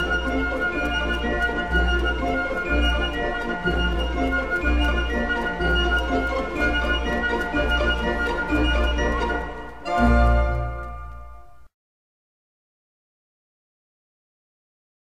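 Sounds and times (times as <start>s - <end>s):
orchestral ballet music: 0.0s - 11.7s.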